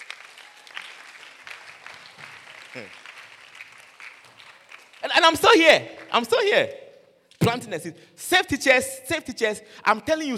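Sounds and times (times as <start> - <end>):
audience clapping: 0.0 - 6.3
speech: 2.8 - 3.0, 5.2 - 6.8, 7.4 - 10.3.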